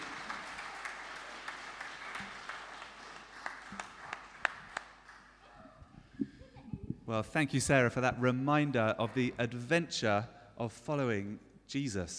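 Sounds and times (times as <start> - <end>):
audience applause: 0.0 - 5.4
speech: 7.1 - 12.1.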